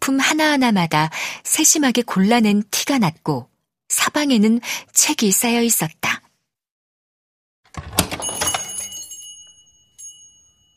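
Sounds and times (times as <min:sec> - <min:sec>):
speech: 0:00.1 - 0:06.2
entrance door bell ringing at a hotel: 0:07.8 - 0:10.7.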